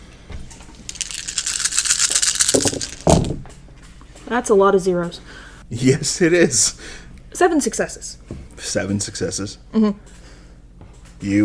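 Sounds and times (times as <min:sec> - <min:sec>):
handful of dice rattling and clattering: 0:00.9 - 0:03.4
speech: 0:04.3 - 0:10.2, 0:11.2 - 0:11.4.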